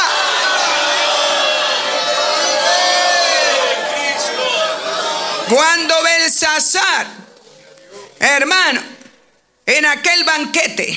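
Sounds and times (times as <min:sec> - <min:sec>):
audience shouting hallelujah: 0:00.0 - 0:08.2
speech: 0:05.5 - 0:07.3, 0:08.2 - 0:08.9, 0:09.7 - 0:10.9.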